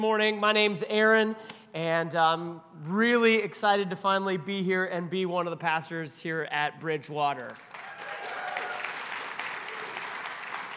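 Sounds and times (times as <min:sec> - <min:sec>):
speech: 0:00.0 - 0:07.8
audience applause from a large audience: 0:07.5 - 0:10.7.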